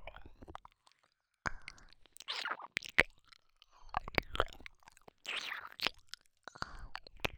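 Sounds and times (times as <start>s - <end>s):
ear licking: 1.5s - 3.4s, 3.9s - 7.3s.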